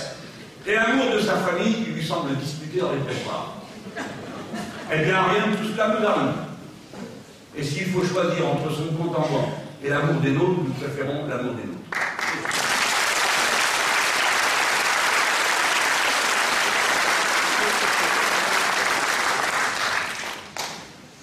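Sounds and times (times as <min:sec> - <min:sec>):
speech: 0:00.7 - 0:06.4, 0:07.6 - 0:12.0
laughter: 0:03.7 - 0:04.9, 0:17.6 - 0:18.6
audience applauding: 0:11.9 - 0:20.9.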